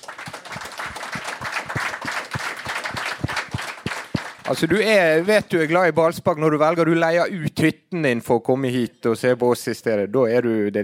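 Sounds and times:
audience applause: 0.0s - 5.2s
speech: 4.5s - 10.8s.

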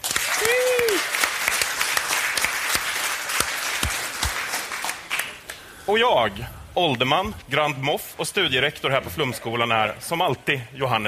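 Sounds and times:
audience applause: 0.0s - 5.6s
speech: 5.9s - 11.0s.

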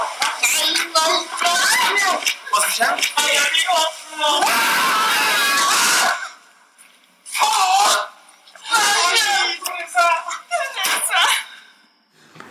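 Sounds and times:
family shouting and screaming excitedly: 0.2s - 6.4s, 7.3s - 11.5s.

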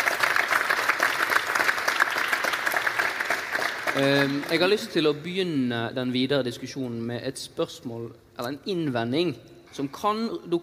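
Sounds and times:
audience applause: 0.0s - 5.0s
speech: 4.0s - 10.6s.

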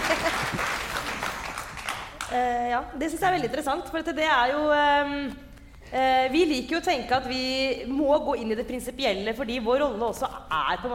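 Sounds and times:
laughter: 0.0s - 1.1s
applause: 0.0s - 2.4s
speech: 2.3s - 10.9s.

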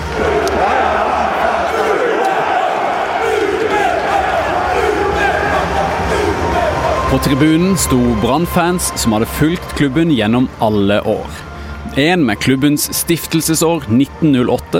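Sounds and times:
angry football supporters chanting: 0.0s - 8.8s
speech: 7.1s - 14.7s.

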